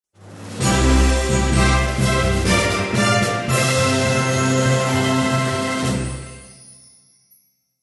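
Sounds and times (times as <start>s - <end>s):
background music fanfare: 0.4s - 6.6s.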